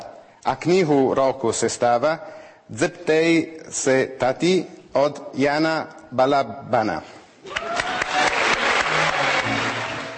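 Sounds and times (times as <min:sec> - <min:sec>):
speech: 0:00.4 - 0:07.2
audience ovation: 0:07.4 - 0:10.1.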